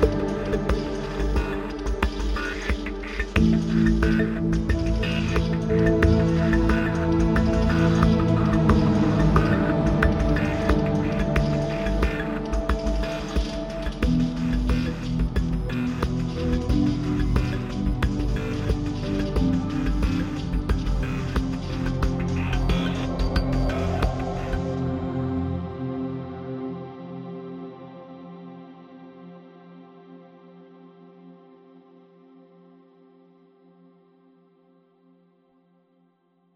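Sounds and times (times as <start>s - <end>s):
destructive ambience: 0.0s - 25.6s.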